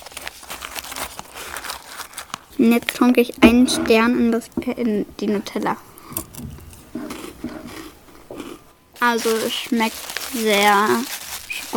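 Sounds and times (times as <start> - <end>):
crinkly snack bag opening: 0.0 - 3.4, 6.0 - 11.7
speech: 2.6 - 6.5, 9.0 - 11.7.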